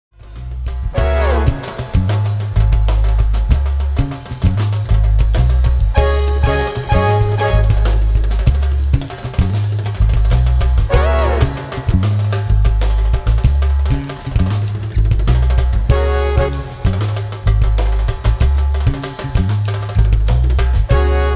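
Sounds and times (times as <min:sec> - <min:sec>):
world beat music: 0:00.2 - 0:21.3.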